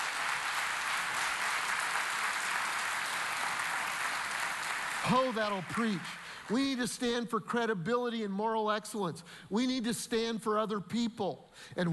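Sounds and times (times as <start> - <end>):
crowd clapping: 0.0 - 6.9
speech: 5.0 - 11.9.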